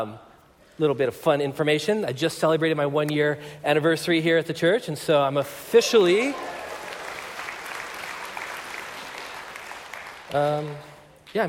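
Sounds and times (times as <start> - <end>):
speech: 0.0 - 6.6, 10.3 - 11.4
church audience applause: 6.0 - 11.0.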